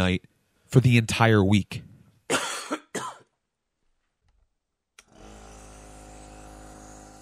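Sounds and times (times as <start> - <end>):
speech: 0.0 - 1.9
person coughing: 2.3 - 3.3
nebulizer machine motor humming: 5.0 - 7.1.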